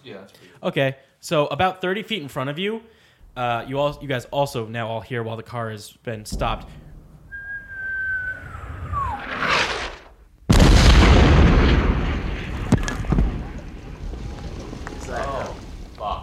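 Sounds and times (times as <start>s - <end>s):
speech: 0.0s - 6.8s
artillery shell exploding on road: 6.3s - 16.2s
debris popping: 6.3s - 16.2s
incoming artillery shell whistle: 7.2s - 10.0s.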